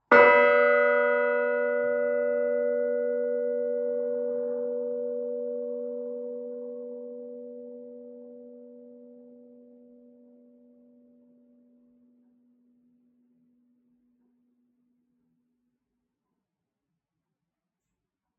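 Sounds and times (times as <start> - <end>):
bells: 0.0 - 9.4.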